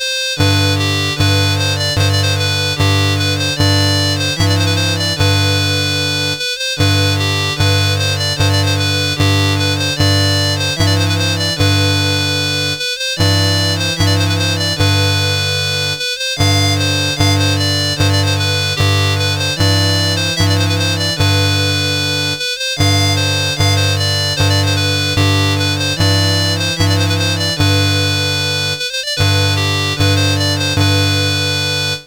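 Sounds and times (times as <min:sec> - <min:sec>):
national anthem on sound chip: 0:00.0 - 0:32.0.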